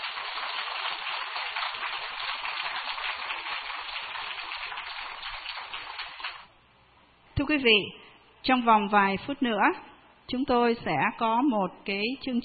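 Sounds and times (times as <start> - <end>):
audience applause: 0.0 - 6.5
speech: 7.4 - 12.4.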